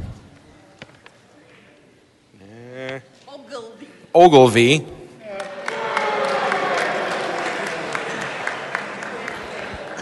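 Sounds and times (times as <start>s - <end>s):
speech: 4.2s - 5.0s
crowd booing: 5.3s - 10.0s.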